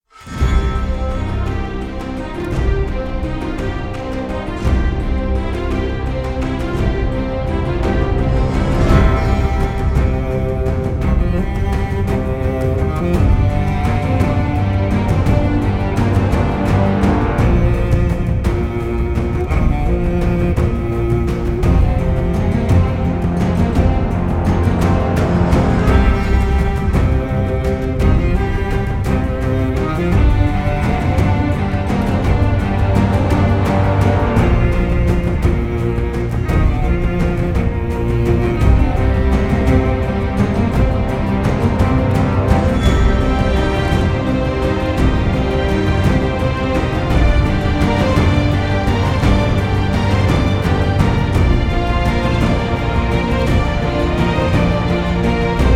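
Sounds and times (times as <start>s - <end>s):
choir: 0.0s - 55.7s
orchestra: 0.0s - 55.7s.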